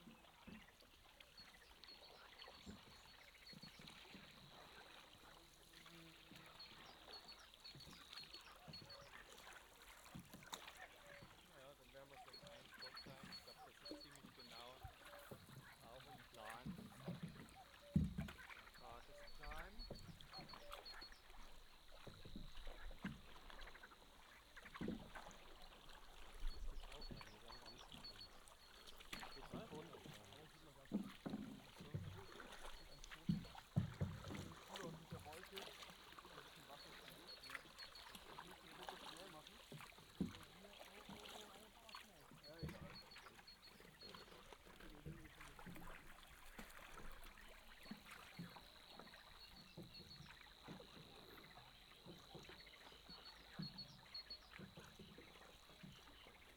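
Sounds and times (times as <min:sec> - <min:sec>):
paddle boats: 0:00.0 - 0:56.5.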